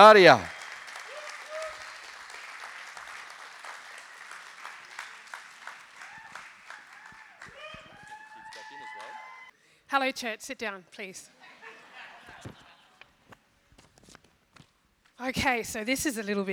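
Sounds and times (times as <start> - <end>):
speech: 0.0 - 0.5, 9.9 - 11.4, 15.2 - 16.5
church congregation applauding to welcome a speaker: 0.0 - 9.5
high whoops and scattered voices: 1.1 - 1.8, 7.0 - 9.5
laughter: 11.4 - 13.2.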